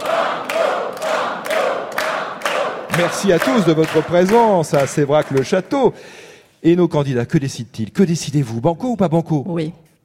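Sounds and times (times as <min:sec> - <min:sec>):
game show studio audience chanting to urge on a contestant: 0:00.0 - 0:04.0
speech: 0:03.0 - 0:10.0.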